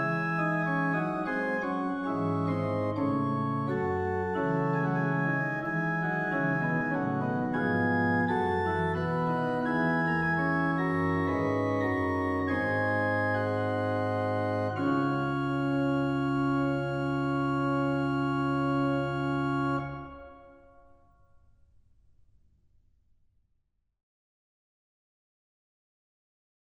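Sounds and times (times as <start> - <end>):
organ voluntary: 0.0 - 20.9.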